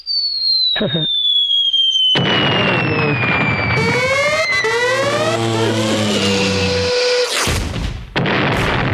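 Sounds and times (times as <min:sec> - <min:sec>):
falling whistle: 0:00.0 - 0:07.5
explosion sound effect blast with crackling: 0:02.0 - 0:08.9.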